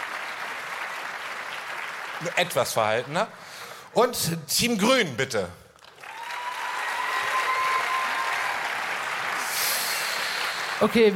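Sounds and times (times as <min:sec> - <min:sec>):
audience clapping for a team: 0:00.0 - 0:03.8, 0:05.8 - 0:11.1
speech: 0:02.2 - 0:05.6, 0:10.8 - 0:11.1.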